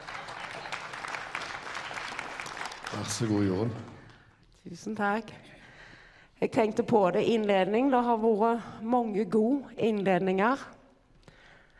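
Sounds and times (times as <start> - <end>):
audience applause: 0.0 - 4.1
speech: 2.9 - 4.0, 4.6 - 5.5, 6.4 - 10.8.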